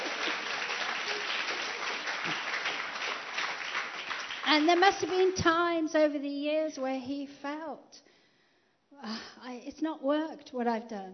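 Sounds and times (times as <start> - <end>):
audience applause: 0.0 - 5.4
speech: 4.5 - 8.1, 9.0 - 11.1.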